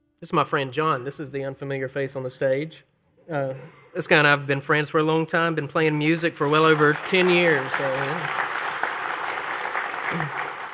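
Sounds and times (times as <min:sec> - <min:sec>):
speech: 0:00.2 - 0:08.5
audience applause: 0:06.4 - 0:10.7.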